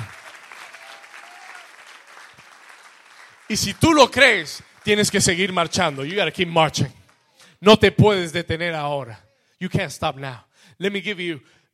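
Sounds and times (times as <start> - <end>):
audience applause: 0.0 - 7.2
speech: 3.5 - 7.0, 7.6 - 11.6.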